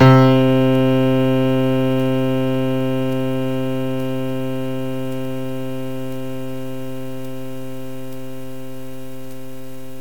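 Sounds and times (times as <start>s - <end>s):
piano: 0.0s - 4.6s.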